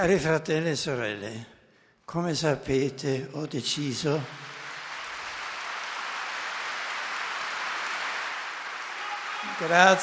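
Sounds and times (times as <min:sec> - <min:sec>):
speech: 0:00.0 - 0:04.5, 0:09.6 - 0:10.0
audience applause in a large hall: 0:03.6 - 0:10.0.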